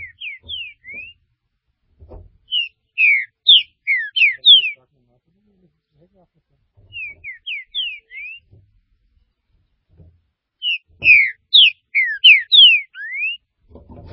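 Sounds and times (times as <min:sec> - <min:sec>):
Green-winged saltator whistled song: 0:00.0 - 0:01.2, 0:02.5 - 0:04.8, 0:06.9 - 0:08.5, 0:10.6 - 0:13.4.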